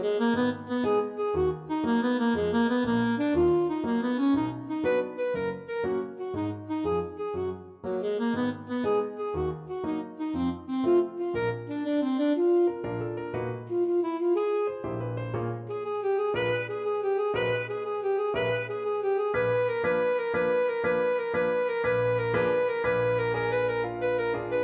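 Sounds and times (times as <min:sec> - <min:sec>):
alto saxophone playing a tarantelle: 0:00.0 - 0:24.6.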